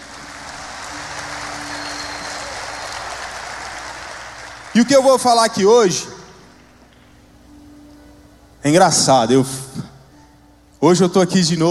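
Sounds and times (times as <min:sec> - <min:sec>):
audience applause: 0:00.0 - 0:05.9
speech: 0:04.8 - 0:06.2, 0:08.6 - 0:09.9, 0:10.8 - 0:11.6.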